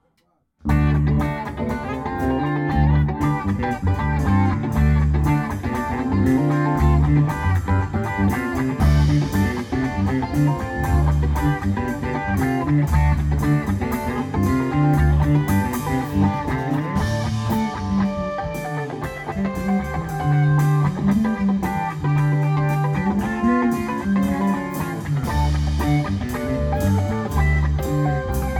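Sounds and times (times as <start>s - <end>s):
funky music: 0.6s - 28.5s.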